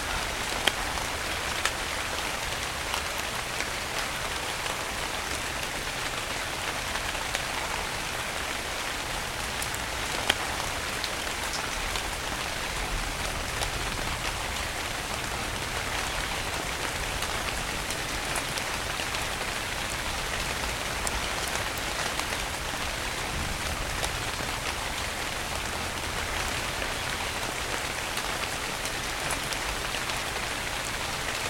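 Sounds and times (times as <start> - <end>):
rain storm: 0.0 - 31.4.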